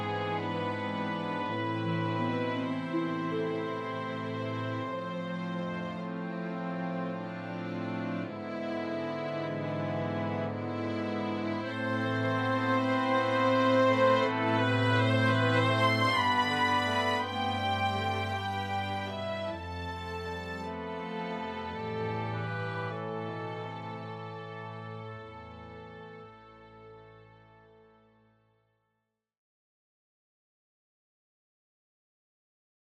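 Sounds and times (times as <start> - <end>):
sad music for a scene: 0.0 - 28.1.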